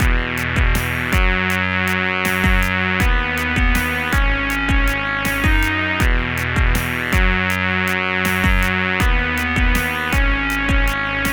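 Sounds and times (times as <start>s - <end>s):
backing music: 0.0s - 11.3s.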